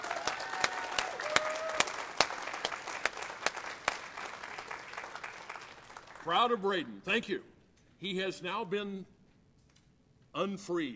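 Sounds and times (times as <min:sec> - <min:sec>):
audience applause: 0:00.0 - 0:06.4
speech: 0:06.3 - 0:09.1, 0:10.4 - 0:10.9.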